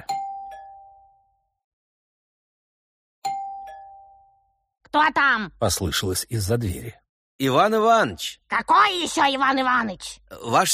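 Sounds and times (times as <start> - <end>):
doorbell chime: 0.0 - 1.6, 3.2 - 4.7
speech: 5.0 - 10.7.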